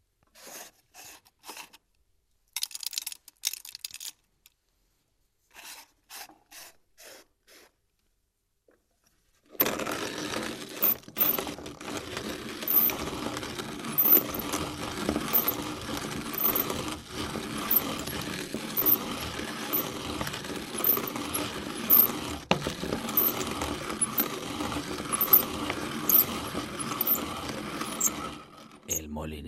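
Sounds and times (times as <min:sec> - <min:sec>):
manual coffee grinder grinding coffee: 0:09.5 - 0:29.0.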